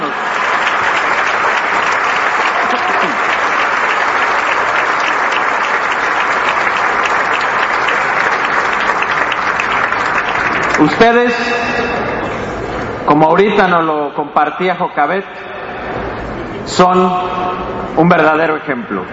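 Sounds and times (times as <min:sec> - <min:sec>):
loud audience applause: 0:00.0 - 0:12.0
speech: 0:10.8 - 0:11.8, 0:13.1 - 0:15.5, 0:16.7 - 0:19.1.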